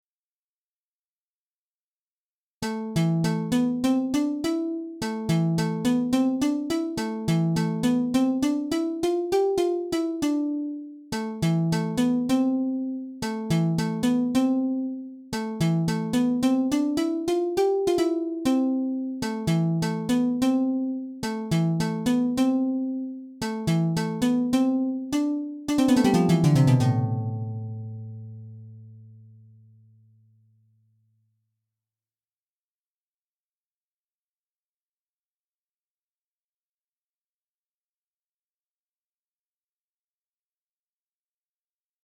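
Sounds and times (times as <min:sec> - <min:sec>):
harp: 0:03.0 - 0:28.8.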